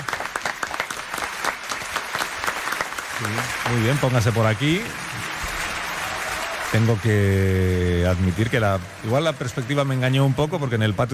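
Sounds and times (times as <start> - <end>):
audience applause: 0.0 - 11.1
speech: 3.2 - 5.2, 6.7 - 11.1.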